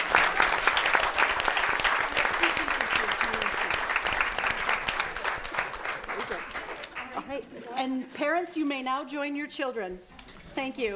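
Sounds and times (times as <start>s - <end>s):
audience applause: 0.0s - 7.3s
speech: 8.3s - 10.9s.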